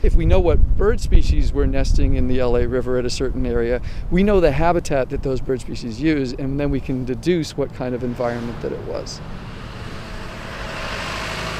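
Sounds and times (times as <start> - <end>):
speech: 0.0 - 9.5
distant freeway traffic buzzing: 5.7 - 11.5.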